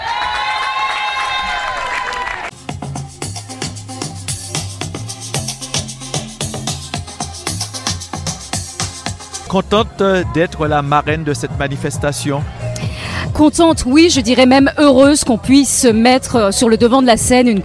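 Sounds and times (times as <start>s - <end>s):
crowd applauding and cheering: 0.0s - 2.6s
speech: 9.5s - 12.7s, 13.4s - 17.6s.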